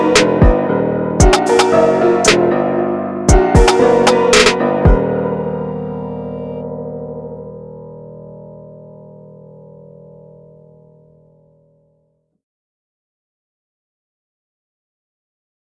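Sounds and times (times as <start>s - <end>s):
broken piano: 0.0s - 12.0s.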